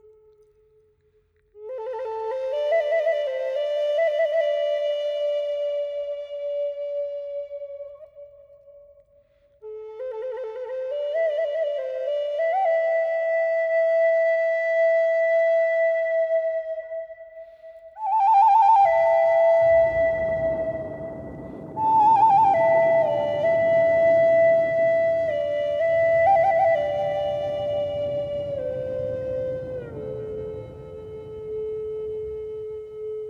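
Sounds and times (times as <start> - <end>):
Native American flutes: 1.6 - 33.2
thunder on a warm summer evening: 18.6 - 33.2.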